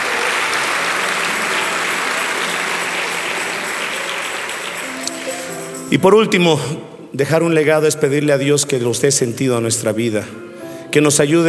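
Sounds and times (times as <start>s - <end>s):
audience applause: 0.0s - 5.9s
speech: 5.9s - 11.4s.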